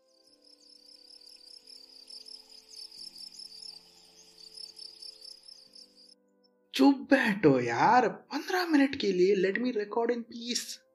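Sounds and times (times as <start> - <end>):
cricket chirping: 0.0 - 6.2
speech: 6.8 - 10.9.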